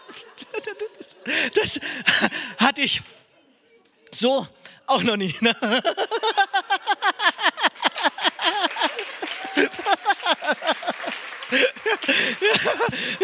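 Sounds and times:
laughter: 0.0 - 2.7, 5.0 - 13.2
speech: 1.3 - 3.2, 4.2 - 6.4, 11.5 - 13.2
audience clapping: 6.8 - 13.2.

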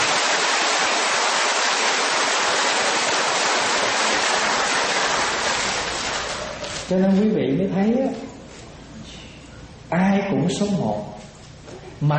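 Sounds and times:
audience applause: 0.0 - 6.9
speech: 6.9 - 8.3, 9.9 - 11.1, 12.0 - 12.1.

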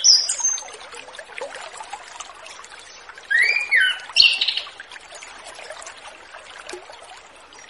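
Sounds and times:
orange-headed thrush singing whistles: 3.3 - 4.4.

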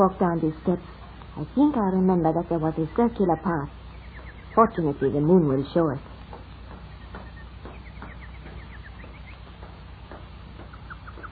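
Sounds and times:
speech: 0.0 - 3.8, 4.6 - 6.1
nightingale singing at night under a full moon: 0.0 - 11.2
steady low hum: 0.0 - 11.2.

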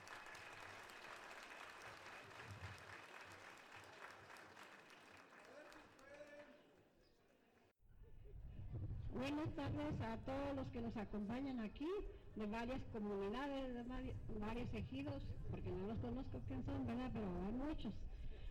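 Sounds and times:
audience clapping: 0.0 - 6.5
speech: 9.2 - 18.1.

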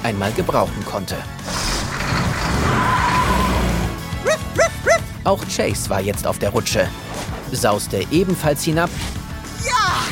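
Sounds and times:
speech: 0.0 - 1.6, 4.2 - 9.2
truck tires skidding: 1.4 - 4.2
truck engine rumbling as it pulls away: 1.4 - 5.2.

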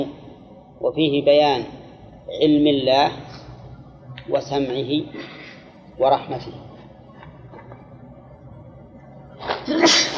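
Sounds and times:
speech: 0.8 - 3.3, 4.3 - 5.4, 6.0 - 6.7
sneeze during a lesson of Quranic commentary: 9.7 - 10.1.

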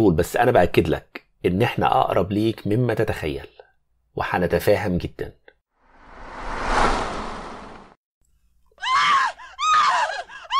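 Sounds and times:
speech: 0.0 - 3.5, 4.2 - 5.4
woman screaming outside: 8.8 - 10.5.

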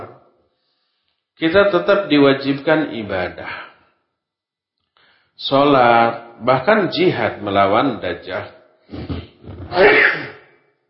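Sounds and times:
speech: 1.4 - 3.7, 5.4 - 10.2
person sneezing: 8.9 - 10.4.

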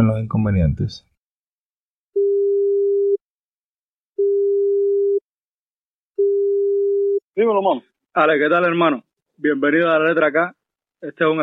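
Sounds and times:
speech: 0.0 - 1.1, 7.4 - 11.4
telephone line tone before call connects: 2.2 - 3.2, 4.2 - 5.2, 6.2 - 7.2.

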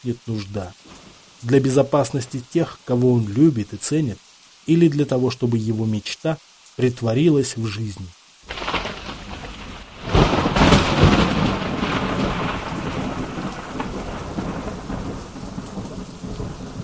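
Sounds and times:
speech: 0.0 - 8.6
heavy rain: 0.0 - 16.8
thunderclap: 8.5 - 16.8.

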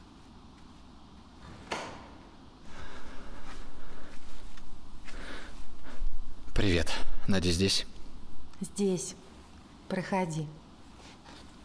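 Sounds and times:
door being opened: 1.4 - 2.2
speech: 6.6 - 7.9, 8.6 - 9.2, 9.9 - 10.6.

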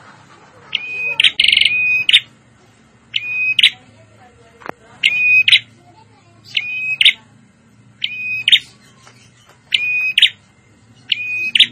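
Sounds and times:
prinia calls: 0.6 - 2.3, 3.1 - 3.8, 5.0 - 5.8, 6.4 - 7.3, 8.0 - 11.7.

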